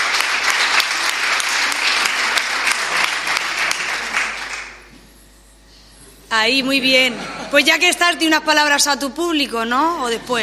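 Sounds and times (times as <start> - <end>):
crowd applause: 0.0 - 4.9
speech: 6.4 - 10.4.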